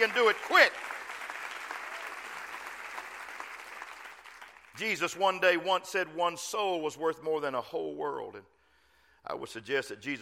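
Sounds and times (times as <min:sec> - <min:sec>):
speech: 0:00.0 - 0:00.9, 0:04.8 - 0:08.6, 0:09.2 - 0:10.1
audience clapping hands: 0:00.0 - 0:04.8.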